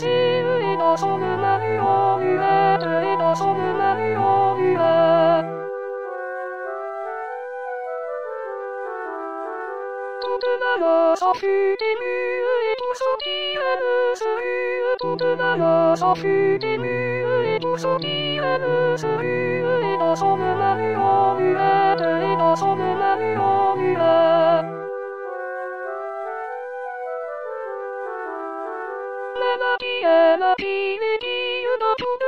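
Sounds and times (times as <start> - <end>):
soprano singing: 0.0 - 5.8, 10.2 - 25.0, 28.4 - 32.2.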